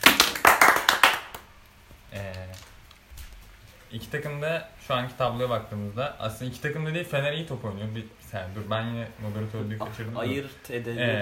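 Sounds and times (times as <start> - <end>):
short burst of applause from a few people: 0.0 - 1.6
speech: 3.9 - 11.2.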